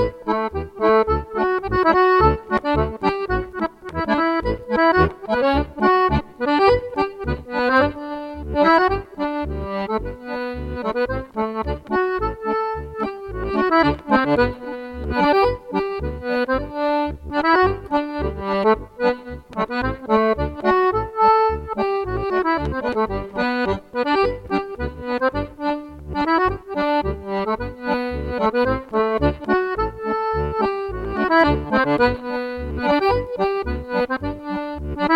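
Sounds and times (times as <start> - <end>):
glockenspiel playing a polka schottische: 0.0 - 35.1.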